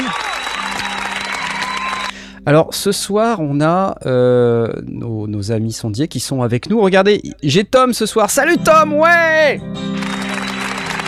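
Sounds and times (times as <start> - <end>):
crowd applauding: 0.0 - 2.3, 9.8 - 11.0
speech: 2.4 - 9.9.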